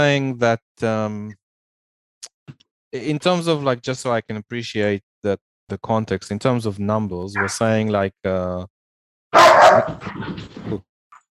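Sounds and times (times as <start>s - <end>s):
speech: 0.0s - 1.4s, 2.9s - 10.9s
dog barking: 9.4s - 10.4s.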